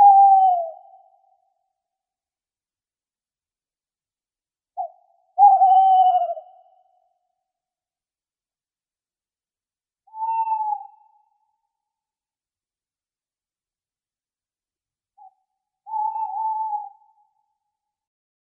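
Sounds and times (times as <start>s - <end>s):
tawny owl calling: 0.0s - 1.3s, 4.8s - 7.1s, 10.1s - 11.4s, 15.2s - 17.5s.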